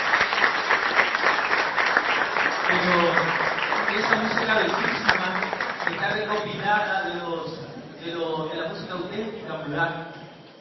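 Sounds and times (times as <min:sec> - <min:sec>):
audience applauding two musicians who composed a stage play score: 0:00.0 - 0:06.8
speech: 0:04.0 - 0:05.1, 0:05.9 - 0:10.2.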